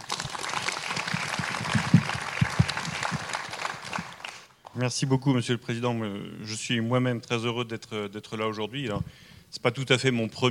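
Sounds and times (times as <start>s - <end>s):
audience applause: 0.0s - 4.6s
speech: 4.8s - 10.4s.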